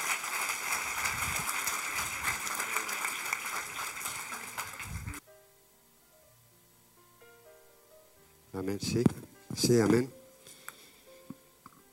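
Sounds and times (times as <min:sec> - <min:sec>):
audience applause: 0:00.0 - 0:05.2
speech: 0:08.6 - 0:10.2.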